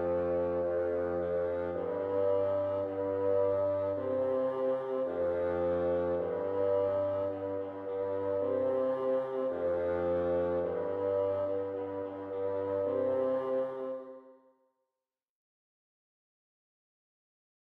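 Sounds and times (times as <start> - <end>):
bass: 0.0 - 13.8.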